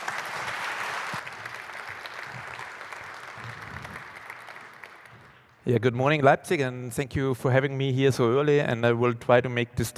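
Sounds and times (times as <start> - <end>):
audience applause: 0.0 - 5.5
speech: 5.7 - 9.9.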